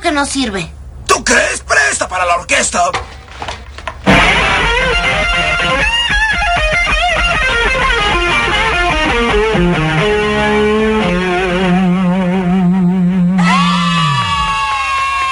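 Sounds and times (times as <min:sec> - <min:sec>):
speech: 0:00.1 - 0:03.1
electric guitar being played with distortion: 0:04.1 - 0:14.8.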